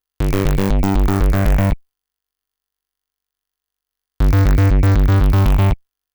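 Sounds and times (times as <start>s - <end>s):
bass: 0.2s - 1.8s, 4.2s - 5.8s.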